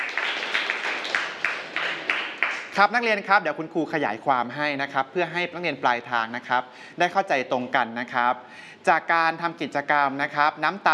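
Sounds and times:
classmates applauding a student after a class science activity report: 0:00.0 - 0:02.8
speech: 0:02.8 - 0:10.9.

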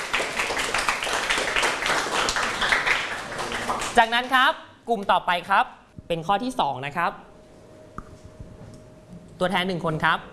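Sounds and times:
classroom applause: 0:00.0 - 0:04.0
speech: 0:04.0 - 0:07.3, 0:09.4 - 0:10.3.

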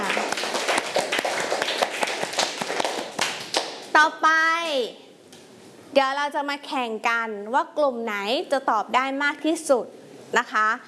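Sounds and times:
students clapping: 0:00.0 - 0:03.9
speech: 0:04.0 - 0:05.0, 0:06.0 - 0:10.8.

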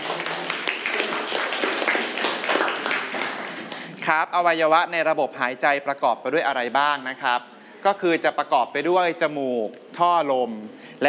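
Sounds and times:
classroom students clapping for a classmate: 0:00.0 - 0:04.0
speech: 0:04.1 - 0:11.0.

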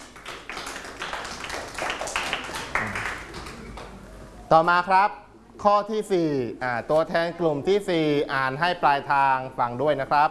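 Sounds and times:
classroom clapping: 0:00.0 - 0:04.0
speech: 0:04.5 - 0:10.2.

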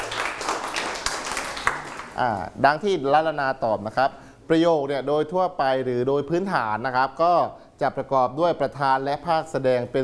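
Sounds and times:
classroom group applause: 0:00.0 - 0:02.2
speech: 0:02.2 - 0:10.0.

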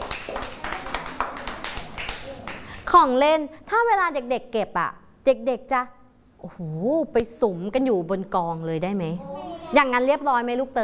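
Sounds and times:
children clapping hands: 0:00.0 - 0:02.8
speech: 0:02.9 - 0:10.8.

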